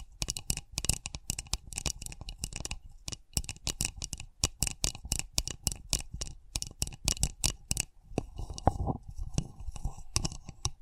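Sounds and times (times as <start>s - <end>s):
sensitive tapping: 0.0s - 10.7s.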